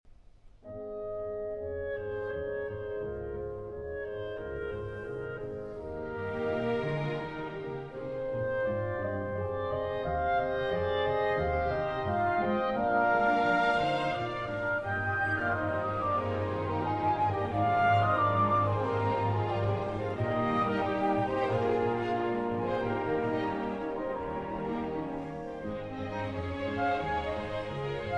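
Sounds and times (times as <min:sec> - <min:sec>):
symphony in C minor played by orchestra: 0:00.6 - 0:28.1.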